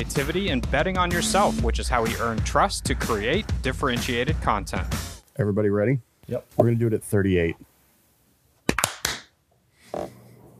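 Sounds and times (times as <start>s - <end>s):
speech: 0.0s - 7.7s
sharp hand claps: 8.7s - 9.3s.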